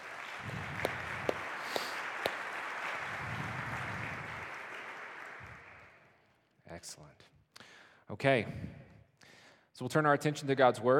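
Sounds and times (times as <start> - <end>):
audience applause: 0.0 - 6.0
speech: 8.1 - 8.8, 9.8 - 10.9.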